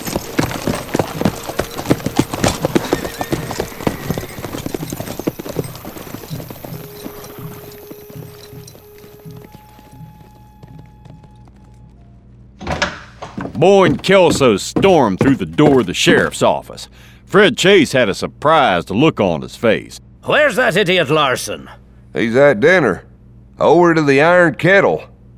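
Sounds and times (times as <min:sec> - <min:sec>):
several horses clip-clopping at a steady walk: 0:00.0 - 0:12.2, 0:13.2 - 0:16.9
speech: 0:13.6 - 0:25.1.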